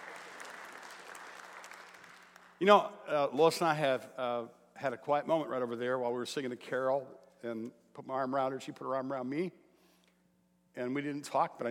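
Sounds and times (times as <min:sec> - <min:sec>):
audience applause: 0:00.0 - 0:02.6
speech: 0:02.6 - 0:09.6, 0:10.8 - 0:11.6.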